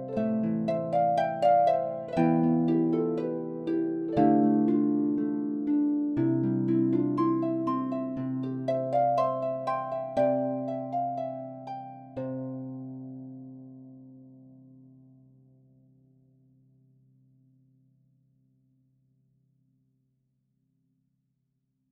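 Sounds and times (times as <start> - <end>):
concert harp lullaby: 0.0 - 15.6.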